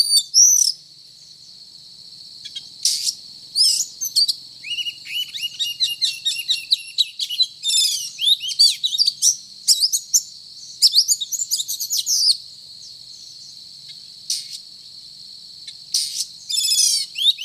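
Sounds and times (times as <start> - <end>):
Oriental magpie-robin whistles and trills: 2.5 - 12.4, 16.0 - 17.4.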